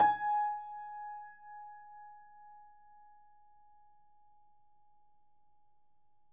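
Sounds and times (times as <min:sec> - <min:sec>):
Steinway piano played fortissimo: 0:00.0 - 0:01.3.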